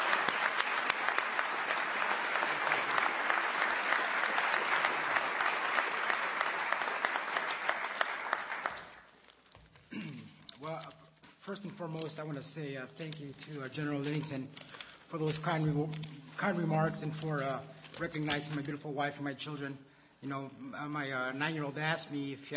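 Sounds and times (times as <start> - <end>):
applause from a large audience: 0.0 - 9.2
speech: 11.6 - 22.5.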